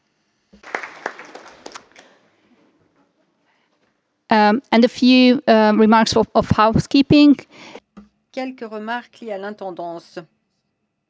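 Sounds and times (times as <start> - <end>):
audience applause: 0.6 - 2.2
speech: 4.5 - 7.8, 8.4 - 10.4.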